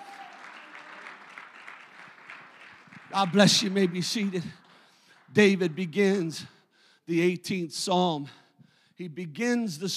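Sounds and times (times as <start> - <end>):
audience clapping hands: 0.0 - 6.5
speech: 3.1 - 4.6, 5.4 - 6.5, 7.1 - 8.4, 9.0 - 9.9.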